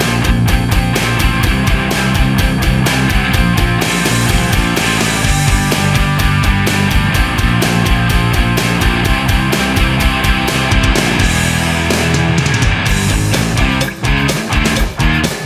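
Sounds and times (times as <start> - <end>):
rock music from a music box: 0.0 - 15.4.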